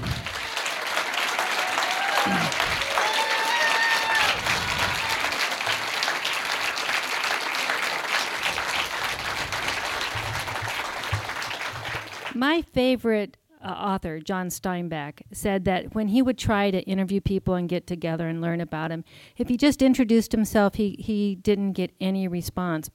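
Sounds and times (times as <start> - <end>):
large audience applause: 0.0 - 12.4
whistles and cheers: 0.1 - 5.8
speech: 12.4 - 22.9.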